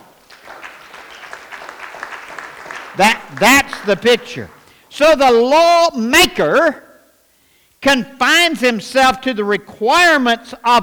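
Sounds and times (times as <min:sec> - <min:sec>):
Baptist congregation clapping during a Sunday sermon: 0:00.0 - 0:04.8
speech: 0:03.0 - 0:06.8, 0:07.8 - 0:10.8.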